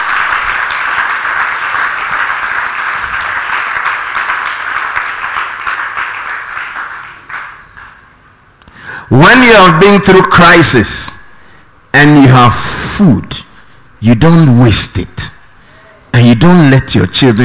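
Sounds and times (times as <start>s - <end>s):
crowd applauding: 0.0s - 8.0s
speech: 9.1s - 11.2s, 11.9s - 15.2s, 16.2s - 17.4s.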